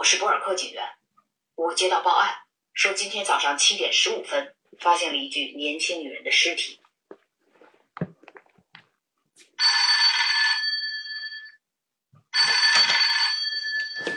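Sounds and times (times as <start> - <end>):
speech: 0.0 - 1.0, 1.6 - 6.8
telephone bell ringing: 9.6 - 11.6, 12.3 - 14.1.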